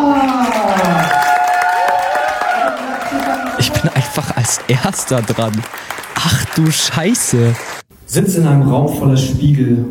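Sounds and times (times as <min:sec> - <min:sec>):
audience applause and cheering for a performer: 0:00.1 - 0:07.8
speech: 0:04.7 - 0:09.8.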